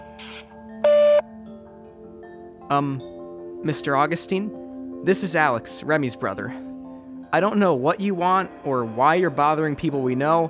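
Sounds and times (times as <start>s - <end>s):
voicemail electronic beep: 0.2s - 1.2s
speech: 2.7s - 6.7s, 7.3s - 10.4s.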